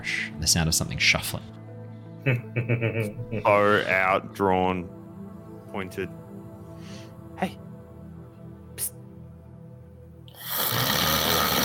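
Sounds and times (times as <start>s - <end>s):
speech: 0.0s - 1.6s, 2.2s - 5.0s, 5.7s - 6.2s, 6.8s - 7.6s
voice imitating snoring of a sleeping character: 10.3s - 11.6s.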